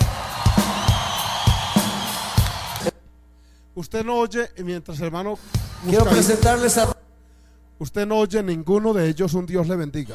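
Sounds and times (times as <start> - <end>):
whoops and shouts: 0.0 - 2.9
crowd applauding and cheering: 0.0 - 3.0
speech: 3.8 - 7.0, 7.8 - 10.1.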